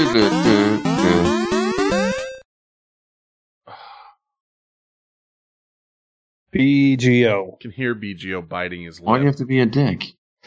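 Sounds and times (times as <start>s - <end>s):
speech: 0.0s - 0.6s, 6.6s - 10.4s
chiptune Nintendo video game theme music with square-wave melody and bass: 0.0s - 2.4s
breathy gasp: 3.7s - 4.2s.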